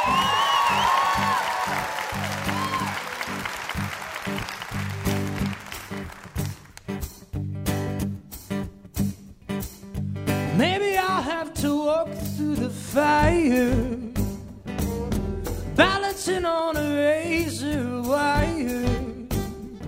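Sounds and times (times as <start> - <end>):
audience applause welcoming a singer and his band: 0.0 - 7.0
rhythmic band music with bass and drums: 0.0 - 19.8.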